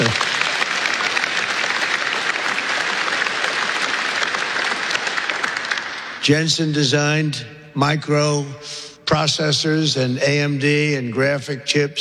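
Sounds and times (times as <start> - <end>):
audience clapping: 0.0 - 7.2
speech: 6.3 - 11.9.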